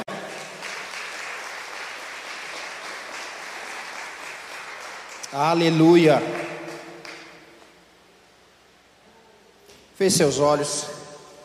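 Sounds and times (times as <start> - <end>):
audience clapping: 0.0 - 7.7
speech: 5.3 - 6.4, 10.0 - 11.0.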